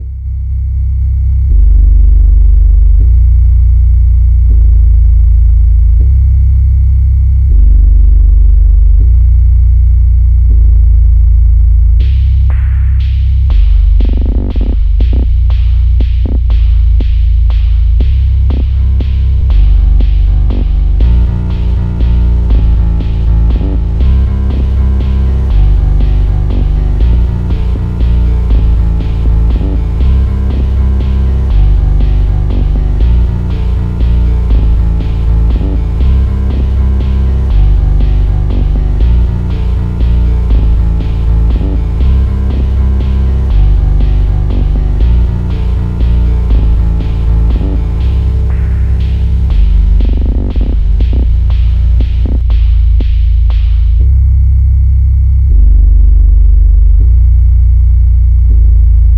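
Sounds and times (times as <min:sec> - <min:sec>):
bass: 0:00.0 - 0:59.1.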